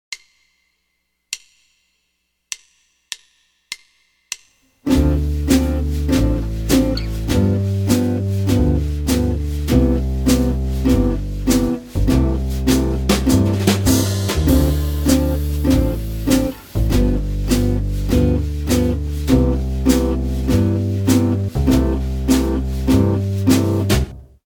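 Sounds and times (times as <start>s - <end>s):
jazz guitar playing a 2 5 1 progression in C major: 4.9s - 24.2s.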